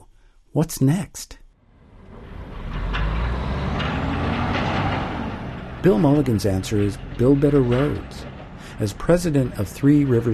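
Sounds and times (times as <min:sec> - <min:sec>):
speech: 0:00.5 - 0:01.4, 0:05.8 - 0:10.3
logs being loaded onto trucks: 0:01.9 - 0:10.3.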